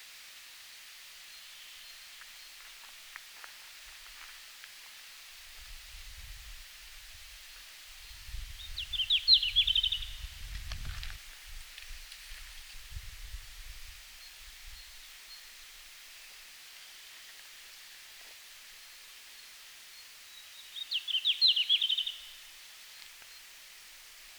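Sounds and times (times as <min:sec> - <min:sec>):
red-flanked bluetail singing in Finland: 0:08.0 - 0:10.3, 0:20.0 - 0:22.4.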